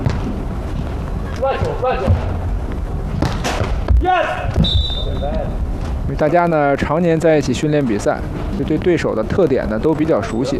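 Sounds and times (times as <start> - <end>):
volleyball serve thumps: 0.0 - 0.4, 3.1 - 4.9
speech: 1.4 - 2.4, 4.0 - 10.5.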